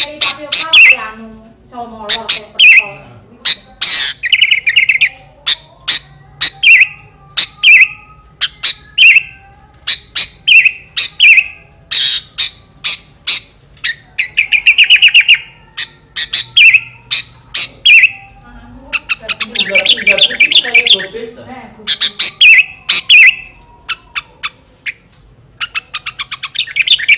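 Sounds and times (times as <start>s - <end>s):
sooty-headed bulbul singing: 0.0s - 1.2s, 1.9s - 27.1s.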